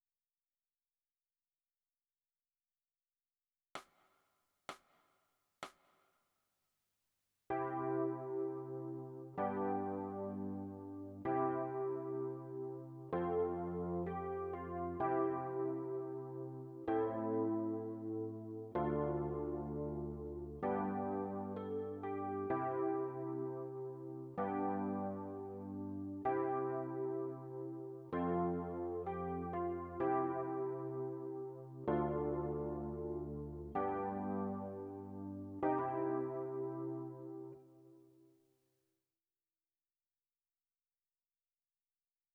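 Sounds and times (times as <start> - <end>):
electric piano: 7.5 - 38.0.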